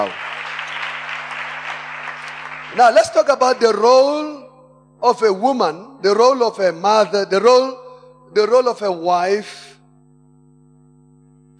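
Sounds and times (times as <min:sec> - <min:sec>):
speech: 0:00.0 - 0:00.3, 0:02.7 - 0:04.4, 0:05.0 - 0:09.7
audience applause: 0:00.0 - 0:03.2.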